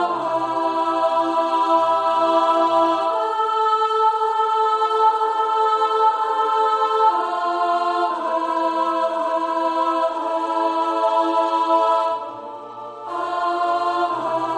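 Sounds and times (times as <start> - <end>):
alto singing a spiritual: 0.0 - 14.5.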